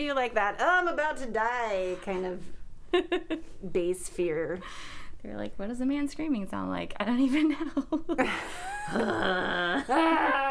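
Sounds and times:
speech: 0.0s - 10.4s
man straining on the toilet: 8.9s - 10.4s.

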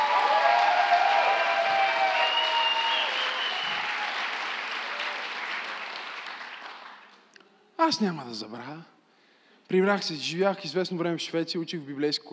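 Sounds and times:
faint cheers: 0.0s - 5.4s
audience applause: 0.0s - 7.2s
speech: 7.9s - 9.0s, 9.7s - 12.3s.

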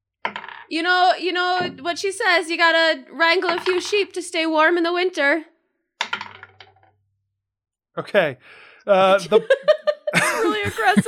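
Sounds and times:
dice rolling: 0.3s - 0.7s, 3.4s - 4.1s, 6.0s - 6.9s
speech: 0.7s - 5.5s, 8.0s - 11.0s
laughter: 8.9s - 11.0s.

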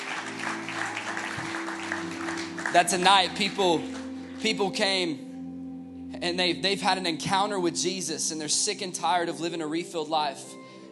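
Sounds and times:
church congregation clapping: 0.0s - 4.9s
sustained low musical tones: 0.0s - 10.9s
speech: 2.7s - 5.2s, 6.2s - 10.6s.

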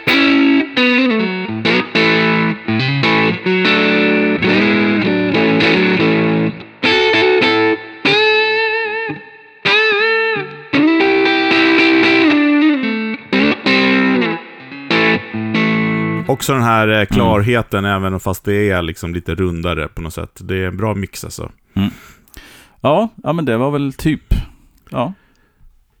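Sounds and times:
distorted electric guitar on the neck pickup: 0.0s - 16.3s
speech: 16.5s - 22.0s, 22.8s - 25.2s.

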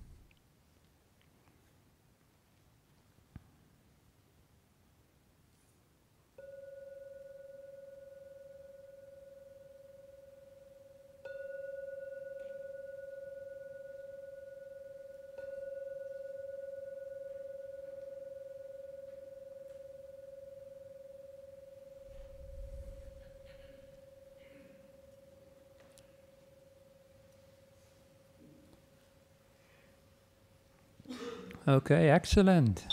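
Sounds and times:
meditation bell ringing: 6.4s - 27.8s
speech: 31.7s - 32.9s.

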